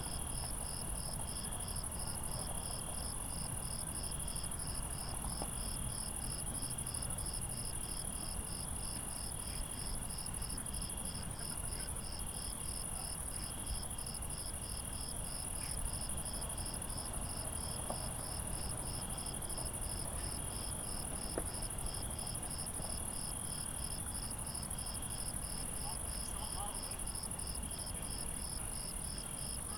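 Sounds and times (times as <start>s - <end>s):
crickets chirping at night: 0.0s - 29.7s.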